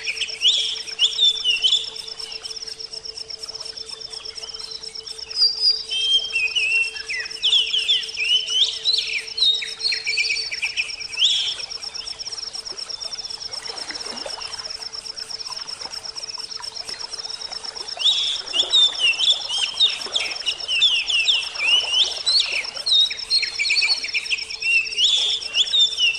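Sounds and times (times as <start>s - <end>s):
oriental magpie-robin whistled song: 0.0s - 2.0s, 4.6s - 11.6s, 18.0s - 26.1s.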